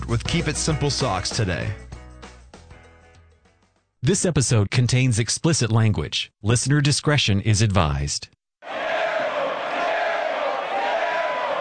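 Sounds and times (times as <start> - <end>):
speech: 0.1 - 1.9, 4.0 - 8.8
Columbus Crew supporters chanting in the stadium during a soccer match: 8.6 - 11.5.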